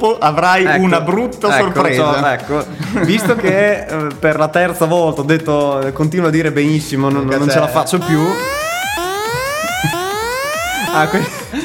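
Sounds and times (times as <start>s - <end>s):
speech: 0.0s - 8.6s, 10.9s - 11.6s
laughter: 2.7s - 3.7s, 10.7s - 11.6s
siren sound effect: 8.0s - 11.5s.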